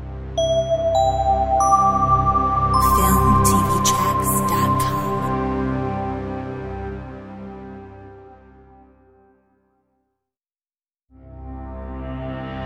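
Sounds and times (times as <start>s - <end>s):
electro logo jingle: 0.4s - 6.2s.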